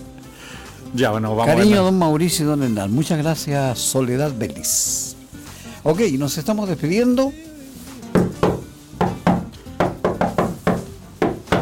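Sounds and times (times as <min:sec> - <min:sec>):
speech: 0:00.9 - 0:05.1, 0:05.8 - 0:07.5
knuckles rapping on the glass window between a studio and its control room: 0:08.1 - 0:11.5.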